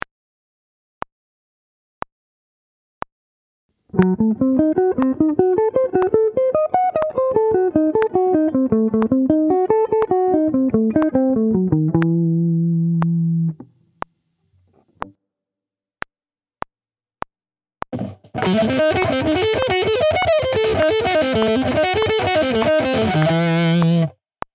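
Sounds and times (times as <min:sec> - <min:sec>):
sweep-picked guitar: 0:03.9 - 0:13.7, 0:18.0 - 0:24.1.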